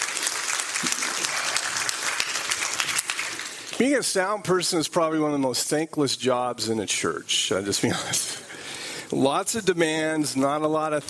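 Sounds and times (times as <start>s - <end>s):
audience applause: 0.0s - 3.8s
speech: 3.8s - 8.5s, 9.1s - 11.0s.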